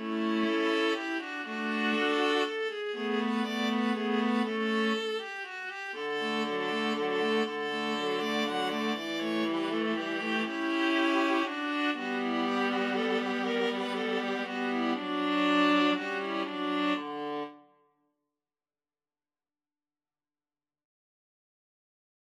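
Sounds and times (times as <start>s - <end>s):
minuet for viola trio: 0.0s - 17.6s.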